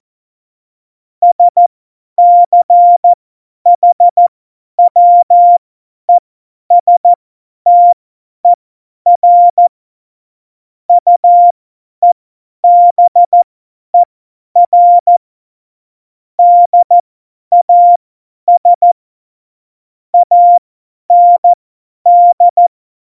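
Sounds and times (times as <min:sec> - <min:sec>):
CW Morse code beeps: 0:01.2 - 0:01.6, 0:02.2 - 0:03.2, 0:03.8 - 0:05.6, 0:06.7 - 0:08.0, 0:09.1 - 0:09.7, 0:10.9 - 0:13.4, 0:14.0 - 0:15.2, 0:16.4 - 0:19.0, 0:20.2 - 0:22.7.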